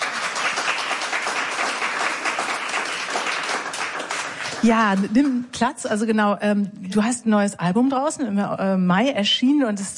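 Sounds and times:
audience applause: 0.0 - 5.2
speech: 4.6 - 9.9.

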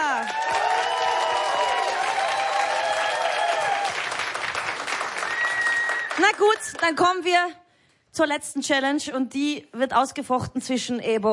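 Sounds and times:
whoops and cheers: 0.0 - 4.1, 5.2 - 6.8
studio audience clapping: 0.0 - 7.3
speech: 6.2 - 7.6, 8.2 - 11.3.

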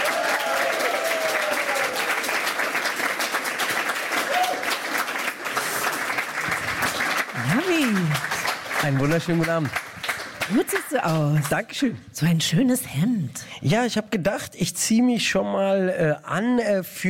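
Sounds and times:
audience applause: 0.0 - 11.6
speech: 8.9 - 9.8, 10.5 - 17.0.

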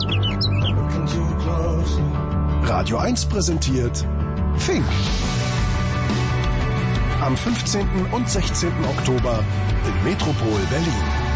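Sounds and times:
sparrows chirping: 0.0 - 1.2
musical backdrop: 0.0 - 11.3
speech: 2.8 - 5.2, 7.2 - 11.2.

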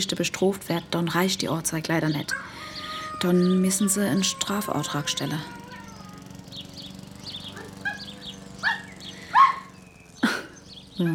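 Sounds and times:
speech: 0.0 - 5.6, 11.0 - 11.1
dog barking: 7.6 - 9.7.

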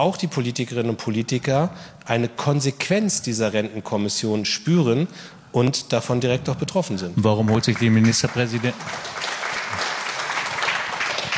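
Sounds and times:
speech: 0.0 - 9.8
applause during a German political debate on pensions: 7.4 - 11.3.

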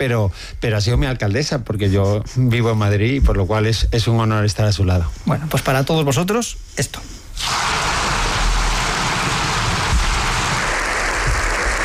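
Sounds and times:
speech: 0.0 - 7.7
recorded applause from the Congreso de los Diputados chamber: 7.6 - 11.8.

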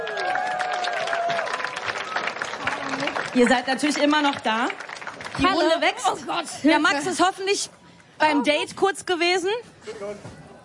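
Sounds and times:
audience applause: 0.0 - 6.1
speech: 3.3 - 4.8, 5.4 - 10.4.

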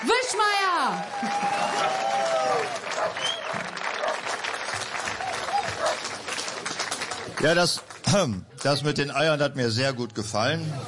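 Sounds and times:
audience clapping for a performer on stage: 0.0 - 9.0
scattered cheers: 0.8 - 3.8
shrill whistles: 3.2 - 3.6
speech: 7.4 - 10.8.

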